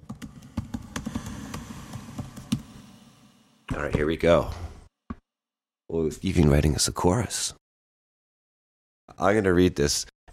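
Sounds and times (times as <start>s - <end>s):
typing on a computer keyboard: 0.0s - 2.6s
speech: 3.7s - 4.6s, 5.9s - 7.6s, 9.1s - 10.3s.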